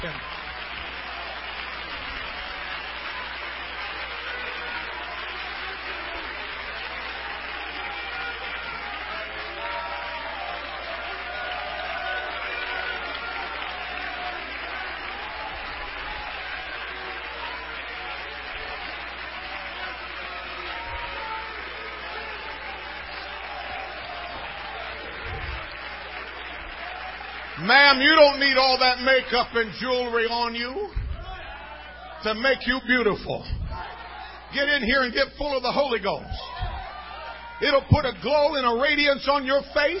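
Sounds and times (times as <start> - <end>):
speech: 0.0 - 0.3, 27.7 - 31.0, 32.2 - 33.6, 34.5 - 36.5, 37.6 - 39.9
audience clapping hands: 0.0 - 39.9.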